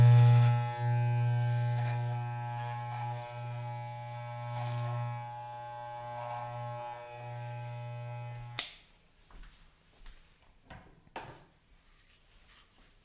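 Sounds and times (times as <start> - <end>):
hair being cut by a barber: 0.0 - 8.8.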